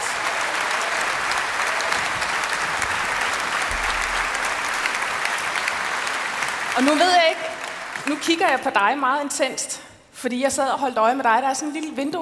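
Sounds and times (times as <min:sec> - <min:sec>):
audience applause: 0:00.0 - 0:08.9
speech: 0:06.8 - 0:07.5, 0:08.1 - 0:12.1.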